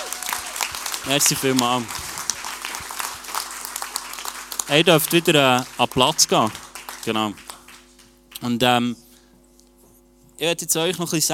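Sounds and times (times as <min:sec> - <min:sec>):
audience applauding: 0:00.0 - 0:08.5
speech: 0:01.0 - 0:02.1, 0:04.7 - 0:07.4, 0:08.4 - 0:09.0, 0:10.4 - 0:11.3.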